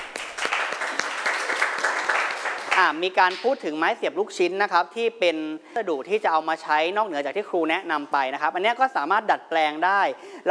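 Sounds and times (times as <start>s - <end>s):
students in a classroom clapping for a classmate: 0.0s - 3.5s
speech: 2.8s - 10.4s.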